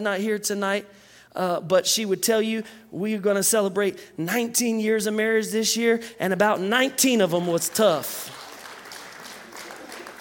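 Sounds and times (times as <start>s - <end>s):
speech: 0.0s - 8.4s
crowd applauding: 8.0s - 10.1s.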